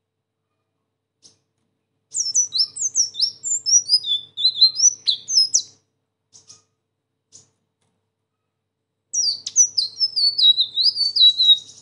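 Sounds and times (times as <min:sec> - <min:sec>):
sunbird singing a high-pitched twittering song: 0:02.1 - 0:06.7, 0:09.2 - 0:11.7.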